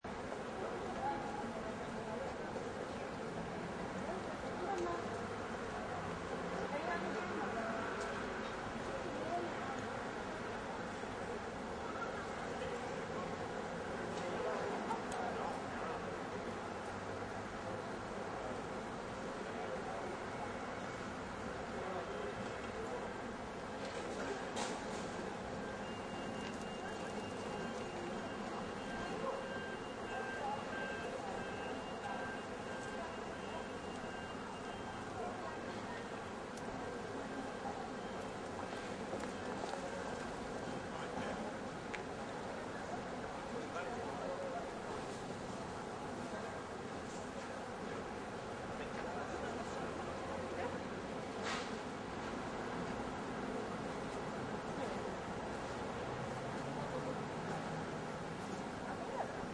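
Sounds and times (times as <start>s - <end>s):
small town open city plaza ambience: 0.0s - 59.5s.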